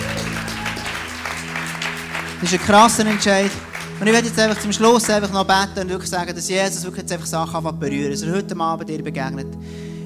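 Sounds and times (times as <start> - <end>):
audience applauding: 0.0 - 5.6
speech: 2.4 - 9.9.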